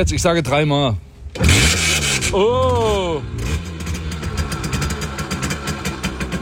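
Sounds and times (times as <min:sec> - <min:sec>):
speech: 0:00.0 - 0:03.4
Simson S51 moped engine rattling after kickstart: 0:01.3 - 0:06.3.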